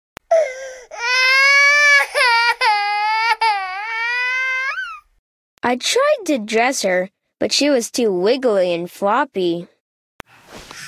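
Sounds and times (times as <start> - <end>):
new baby girl crying: 0.3 - 5.1
speech: 5.7 - 9.7.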